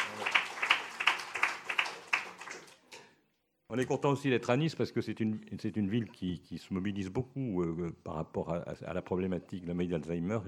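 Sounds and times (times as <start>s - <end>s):
audience applause: 0.0s - 2.8s
speech: 3.7s - 10.4s.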